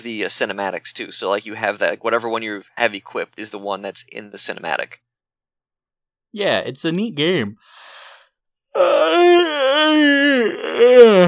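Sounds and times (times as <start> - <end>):
speech: 0.0 - 5.0, 6.3 - 8.0, 8.7 - 11.2
yawn: 8.8 - 11.2.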